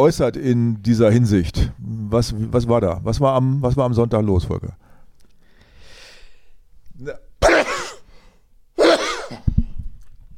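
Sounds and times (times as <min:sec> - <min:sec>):
speech: 0:00.0 - 0:04.8, 0:07.0 - 0:07.2
sharp inhale: 0:04.9 - 0:06.6
person sneezing into a microphone: 0:07.1 - 0:08.1, 0:08.8 - 0:09.5.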